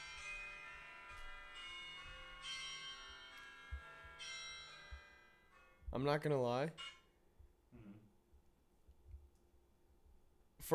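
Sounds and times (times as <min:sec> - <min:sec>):
bell ringing phone alarm: 0:00.0 - 0:05.8, 0:06.7 - 0:07.2
speech: 0:05.9 - 0:07.0.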